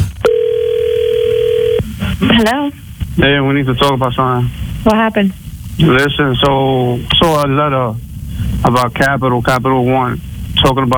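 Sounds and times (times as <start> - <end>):
telephone dial tone: 0.2 - 1.8
speech: 2.2 - 8.0, 8.6 - 10.9.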